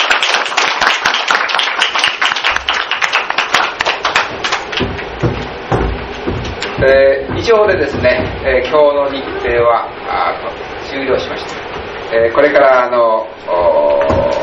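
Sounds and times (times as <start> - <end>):
audience applause: 0.0 - 4.8
speech: 6.8 - 14.3.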